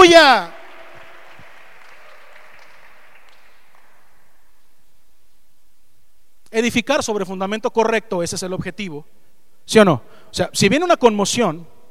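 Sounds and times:
audience applause: 0:00.0 - 0:04.6
speech: 0:00.1 - 0:00.6, 0:06.5 - 0:11.8.

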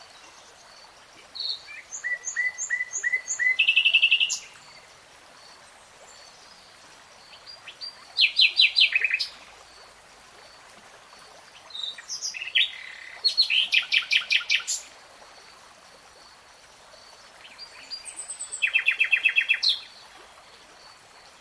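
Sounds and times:
nightingale song: 0:00.0 - 0:09.5, 0:11.5 - 0:14.9, 0:17.2 - 0:20.1.

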